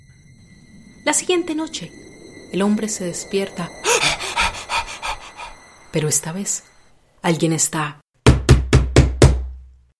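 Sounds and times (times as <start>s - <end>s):
speech: 1.0s - 4.2s, 6.0s - 8.0s
knocking on walls: 8.2s - 9.6s.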